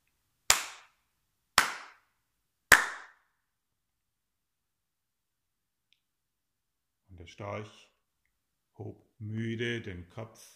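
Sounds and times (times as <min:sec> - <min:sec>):
hands clapping: 0:00.5 - 0:01.0, 0:01.6 - 0:02.1, 0:02.7 - 0:03.2
speech: 0:07.2 - 0:07.9, 0:08.8 - 0:10.5.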